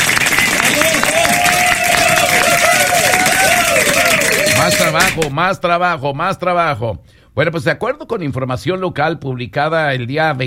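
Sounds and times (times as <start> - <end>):
audience applause: 0.0 - 5.3
crowd cheering: 0.0 - 5.3
speech: 5.2 - 10.4.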